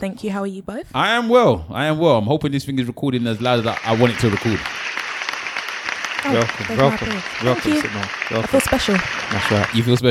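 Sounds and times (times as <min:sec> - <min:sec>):
speech: 0:00.0 - 0:04.8, 0:06.2 - 0:10.0
applause sound effect: 0:03.2 - 0:10.0.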